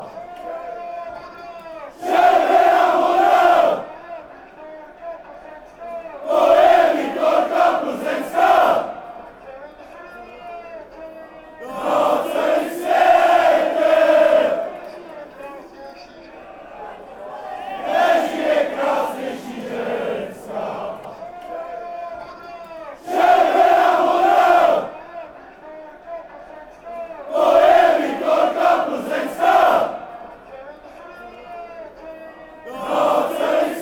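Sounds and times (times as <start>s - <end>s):
fans chanting: 1.8s - 4.0s, 6.2s - 9.4s, 11.6s - 15.2s, 16.6s - 21.6s, 22.8s - 25.4s, 27.1s - 30.6s, 32.6s - 33.8s.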